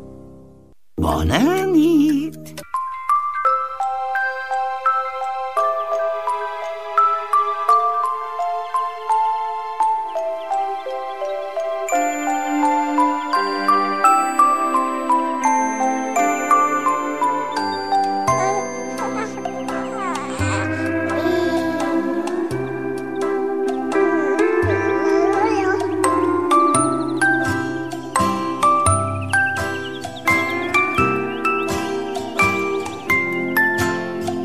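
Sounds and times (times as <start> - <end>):
speech: 1.1 - 2.6
soft background music with tinkling bell-like melody over low tones: 2.6 - 34.4.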